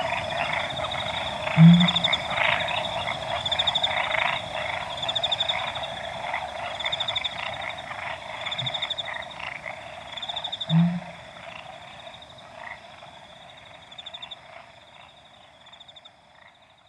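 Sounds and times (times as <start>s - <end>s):
frogs pulsing chorus: 0.0s - 16.8s
Pel's fishing owl deep hoot: 1.6s - 2.2s, 10.7s - 11.2s.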